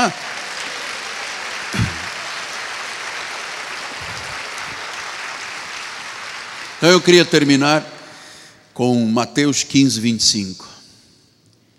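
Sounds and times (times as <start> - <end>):
speech: 0.0 - 0.3, 6.8 - 7.9, 8.8 - 10.8
crowd clapping: 0.0 - 8.1.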